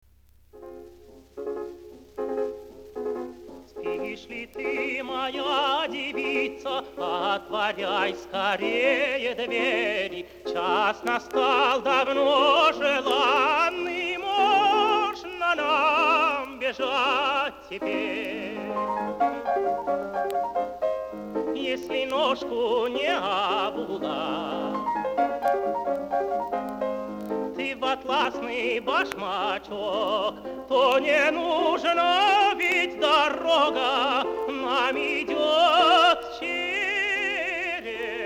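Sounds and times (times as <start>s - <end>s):
Spanish song: 0.5s - 38.2s.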